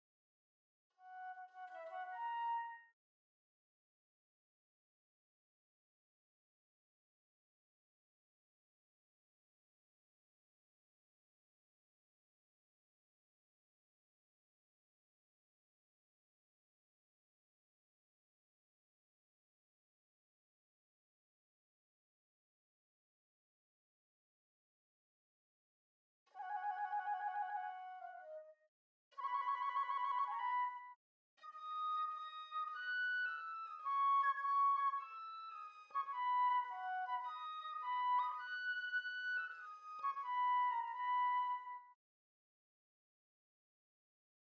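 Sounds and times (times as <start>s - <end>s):
flute: 1.0s - 3.0s, 26.3s - 42.0s.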